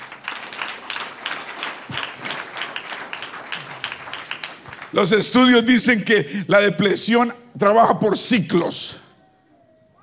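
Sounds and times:
audience applause: 0.0s - 5.9s
speech: 4.9s - 9.0s.

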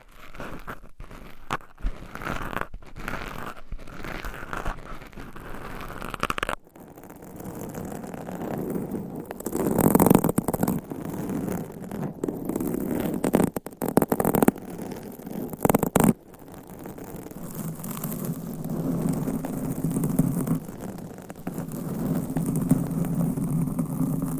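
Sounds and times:
scratching and rubbing against mics and items: 0.0s - 24.3s
low steady rubbing hum: 17.0s - 24.3s.

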